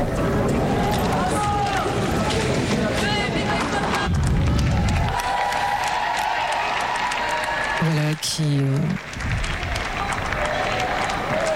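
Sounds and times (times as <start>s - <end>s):
crowd of young people clapping and cheering the Pope: 0.2s - 11.5s.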